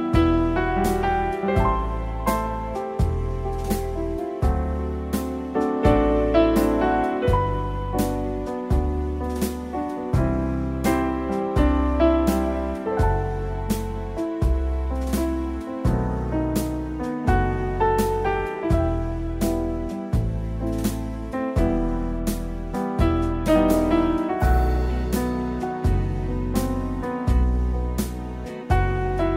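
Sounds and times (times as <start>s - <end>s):
piano cover: 0.0s - 29.3s.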